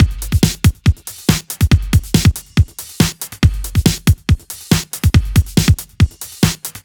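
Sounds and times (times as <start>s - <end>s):
breakbeat drums: 0.0s - 6.8s.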